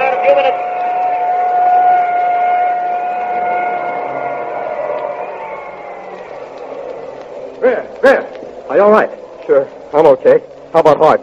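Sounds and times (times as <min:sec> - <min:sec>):
ambulance siren passing: 0:00.0 - 0:08.0
speech: 0:08.8 - 0:09.2, 0:10.2 - 0:11.2.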